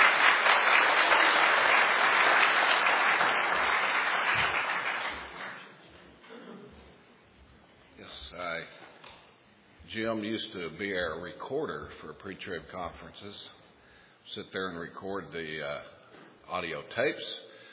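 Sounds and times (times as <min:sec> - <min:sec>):
hand clapping: 0:00.0 - 0:05.8
speech: 0:10.0 - 0:13.6, 0:14.3 - 0:17.4.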